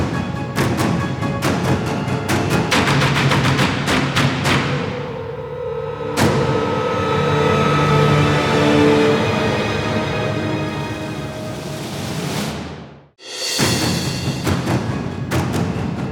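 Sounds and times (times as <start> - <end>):
music: 0.0 - 16.0.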